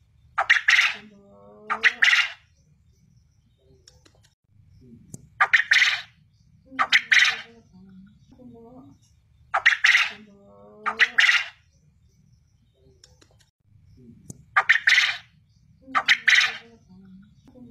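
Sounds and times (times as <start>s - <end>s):
quail calling in rasping triple phrases: 0.4s - 2.5s, 5.4s - 7.6s, 9.5s - 11.7s, 14.6s - 16.9s.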